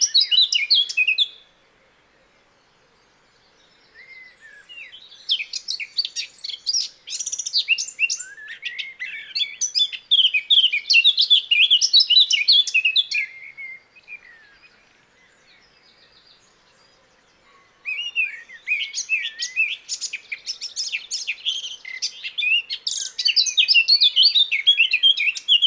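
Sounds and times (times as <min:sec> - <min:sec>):
Eurasian blackcap singing: 0:00.0 - 0:01.4, 0:04.0 - 0:14.4, 0:17.8 - 0:25.6.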